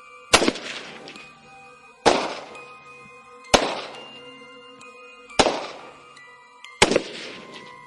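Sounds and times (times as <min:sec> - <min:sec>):
rifle gunfire: 0:00.3 - 0:01.2, 0:02.1 - 0:02.6, 0:03.5 - 0:04.0, 0:05.4 - 0:05.9, 0:06.8 - 0:07.6.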